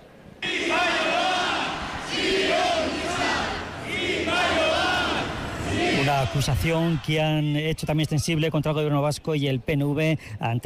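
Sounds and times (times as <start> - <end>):
large protest march crowd shouting chants: 0.4 - 7.5
speech: 6.1 - 10.6.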